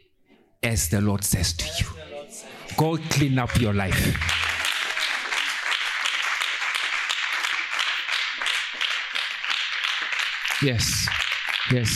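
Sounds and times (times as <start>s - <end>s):
speech: 0.6s - 2.1s, 2.7s - 4.4s, 10.6s - 11.9s
audience clapping: 2.7s - 11.9s.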